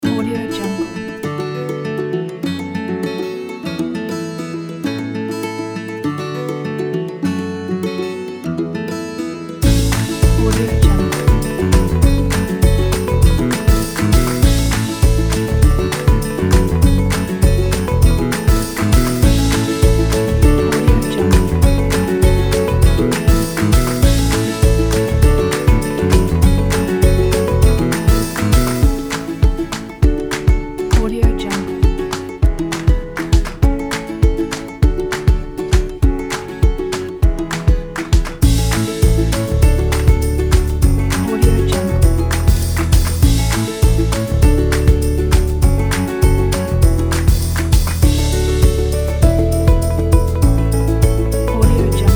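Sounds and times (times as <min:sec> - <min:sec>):
folk music: 0:00.0 - 0:52.1.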